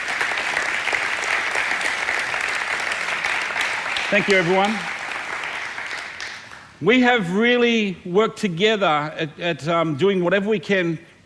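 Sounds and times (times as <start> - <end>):
church audience applause: 0.0 - 6.8
speech: 4.1 - 4.9, 6.8 - 11.2.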